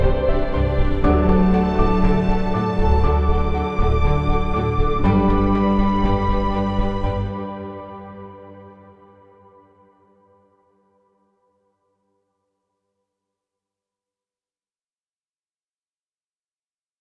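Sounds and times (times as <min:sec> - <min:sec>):
delightful ambient music: 0:00.0 - 0:11.3.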